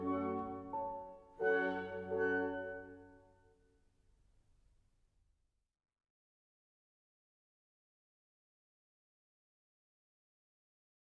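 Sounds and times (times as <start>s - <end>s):
piano concerto andante: 0.0s - 3.4s.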